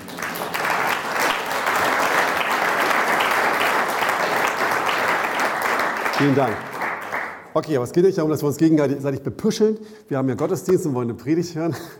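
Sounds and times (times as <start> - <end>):
audience applause: 0.0 - 7.5
speech: 6.2 - 6.7, 7.6 - 11.9.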